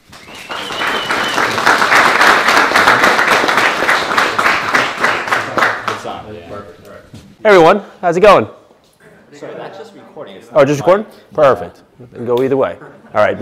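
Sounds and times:
audience applause welcoming a speaker: 0.0 - 6.2
speech: 7.4 - 8.6, 10.4 - 13.4.

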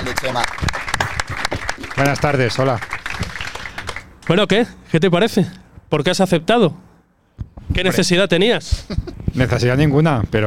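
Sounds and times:
audience applause: 0.0 - 4.5
speech: 0.1 - 0.8, 2.0 - 2.9, 4.3 - 6.9, 7.8 - 10.4
laughter: 8.8 - 9.3.

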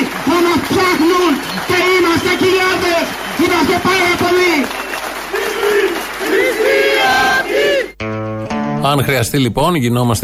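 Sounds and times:
large crowd cheering and applauding: 0.0 - 8.0
speech: 1.0 - 4.8, 8.8 - 10.2.

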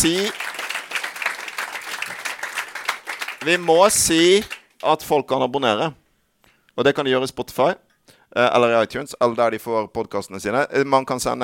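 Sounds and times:
speech: 0.0 - 0.5, 3.4 - 6.0, 6.8 - 11.4
audience applause: 0.0 - 4.7.

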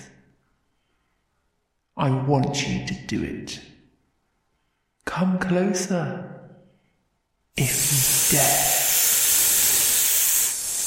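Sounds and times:
speech: 2.0 - 3.8, 5.1 - 6.4, 7.6 - 8.7
snakes hissing: 7.6 - 10.8.

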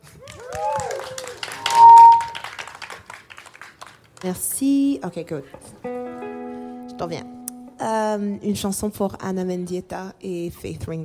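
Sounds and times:
live audience clapping: 0.0 - 4.4
crowd cheering and whooping: 0.2 - 2.5
sustained whistle: 1.4 - 2.5
speech: 4.2 - 6.0, 7.0 - 11.0.

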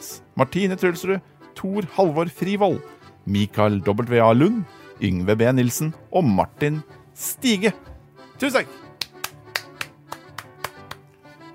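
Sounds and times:
speech: 0.4 - 8.8
hand claps: 8.9 - 11.2.

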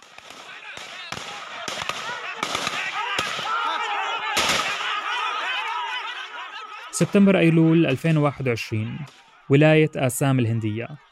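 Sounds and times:
gunfire: 0.0 - 3.7, 4.3 - 5.0
laughter: 1.4 - 11.1
speech: 7.0 - 11.1.

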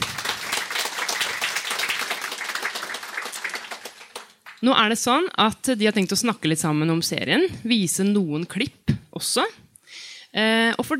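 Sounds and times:
audience applause: 0.0 - 4.6
speech: 4.6 - 9.6, 10.3 - 10.9.

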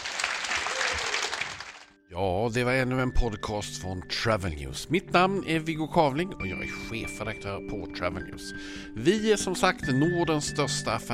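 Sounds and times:
audience applause for the panel: 0.0 - 2.0
speech: 2.1 - 11.1.

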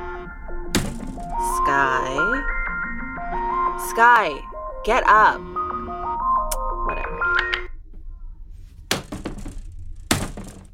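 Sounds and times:
alarm going off: 0.0 - 7.8
speech: 4.0 - 5.6.

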